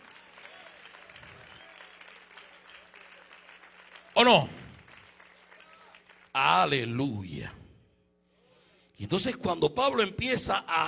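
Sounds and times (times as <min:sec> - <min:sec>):
crowd applause: 0:00.0 - 0:06.3
speech: 0:04.2 - 0:04.6, 0:06.4 - 0:07.6, 0:09.0 - 0:10.8.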